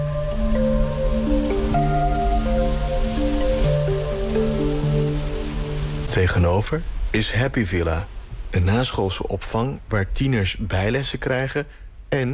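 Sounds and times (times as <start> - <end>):
heavy rain on car: 0.0 - 8.9
speech: 6.1 - 12.3.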